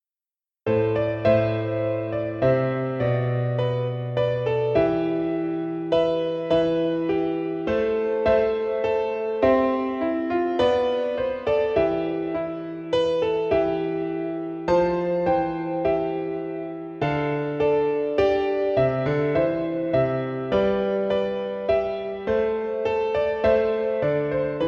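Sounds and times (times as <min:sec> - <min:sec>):
piano: 0:00.6 - 0:24.6.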